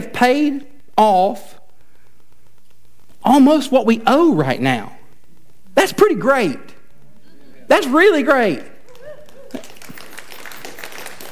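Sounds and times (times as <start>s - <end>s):
speech: 0.2s - 1.6s, 3.2s - 5.0s, 5.8s - 6.8s, 7.7s - 8.7s
audience applause: 8.9s - 11.3s.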